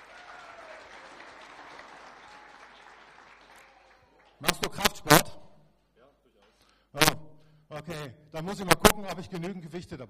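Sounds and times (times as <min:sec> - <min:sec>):
applause: 0:00.0 - 0:04.6
speech: 0:04.4 - 0:05.3, 0:07.8 - 0:10.0.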